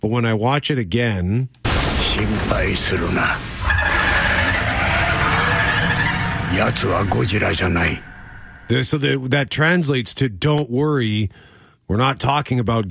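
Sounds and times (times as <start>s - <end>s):
speech: 0.0s - 1.6s, 2.2s - 3.5s, 6.5s - 8.1s, 8.7s - 12.8s
dense loud rumble: 1.7s - 8.8s
Rodan monster screech from a Godzilla film trailer: 2.3s - 8.8s.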